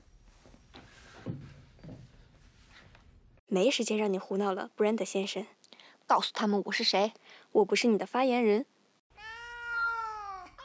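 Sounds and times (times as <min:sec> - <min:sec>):
speech: 0:03.5 - 0:08.7
cat meowing: 0:09.2 - 0:10.6.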